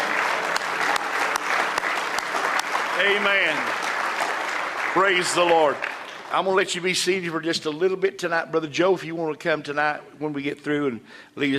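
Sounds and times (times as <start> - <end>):
audience rhythmic clapping: 0.0 - 7.3
speech: 3.0 - 3.9, 5.0 - 11.5.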